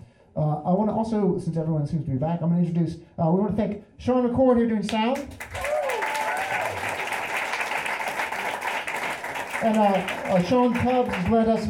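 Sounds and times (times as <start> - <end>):
speech: 0.4 - 5.6, 9.6 - 11.6
audience clapping: 5.2 - 11.6.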